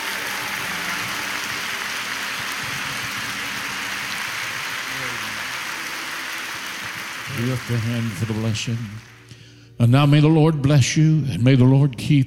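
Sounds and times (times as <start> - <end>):
crowd clapping hands in praise: 0.0 - 9.5
speech: 7.4 - 9.1, 9.8 - 12.2.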